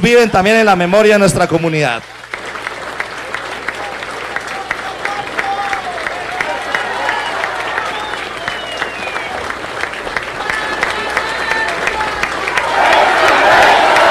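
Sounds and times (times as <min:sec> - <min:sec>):
speech: 0:00.0 - 0:02.2
crowd applause: 0:01.3 - 0:14.0
shouts and voices: 0:04.5 - 0:07.9, 0:10.4 - 0:13.0.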